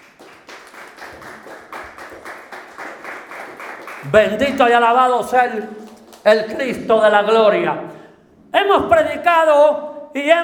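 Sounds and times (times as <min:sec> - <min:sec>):
audience applause: 0:00.0 - 0:04.3
speech: 0:04.0 - 0:07.9, 0:08.5 - 0:10.4.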